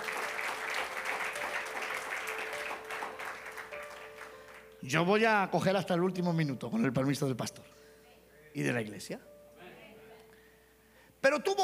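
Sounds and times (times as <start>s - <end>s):
audience applause: 0.0s - 4.7s
speech: 4.8s - 7.8s, 8.6s - 9.3s, 11.2s - 11.6s.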